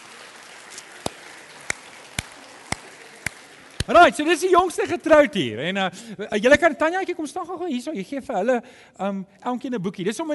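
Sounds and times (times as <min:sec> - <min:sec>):
audience applause: 0:00.0 - 0:05.0
speech: 0:03.9 - 0:10.3.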